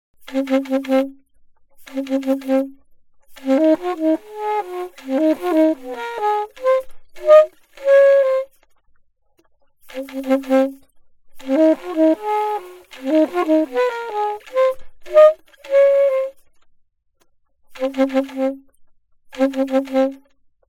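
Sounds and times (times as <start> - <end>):
alto saxophone: 0.2 - 1.2, 1.8 - 8.6, 9.8 - 10.8, 11.4 - 16.4, 17.7 - 18.7, 19.3 - 20.3.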